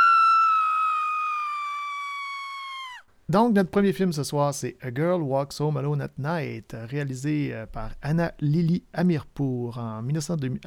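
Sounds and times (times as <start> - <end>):
woman screaming: 0.0 - 3.1
speech: 3.3 - 10.6.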